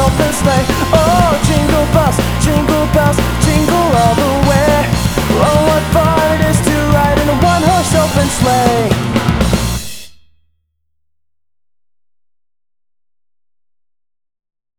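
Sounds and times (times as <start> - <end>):
Christmas song: 0.0 - 9.4.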